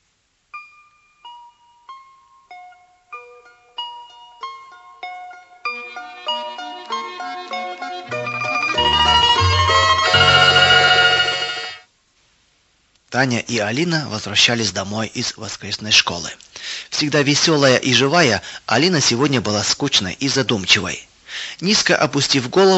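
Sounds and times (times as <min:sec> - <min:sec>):
church bells ringing: 0:06.6 - 0:11.8
speech: 0:13.2 - 0:22.7.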